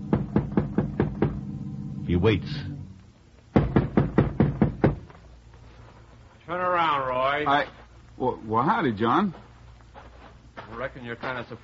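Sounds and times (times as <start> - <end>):
knocking on a front door: 0.0 - 1.5, 3.5 - 5.1
speech: 2.1 - 2.8, 6.5 - 9.4, 10.7 - 11.6.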